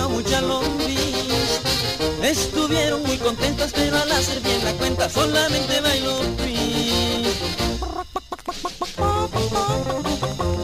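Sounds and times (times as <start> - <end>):
busy bouncy musical backing: 0.0 - 10.6
speech: 0.3 - 0.8, 2.2 - 7.0
hen clucking: 7.6 - 10.6.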